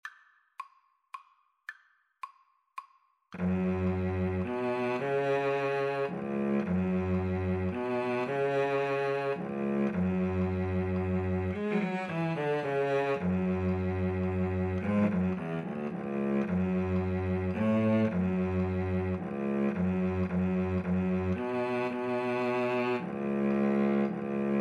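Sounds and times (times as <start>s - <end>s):
cello duet: 3.4s - 24.5s.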